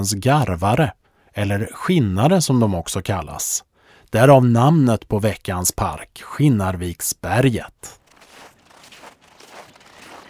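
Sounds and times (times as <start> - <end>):
speech: 0.0 - 8.0
footsteps crunching while walking: 7.8 - 10.2.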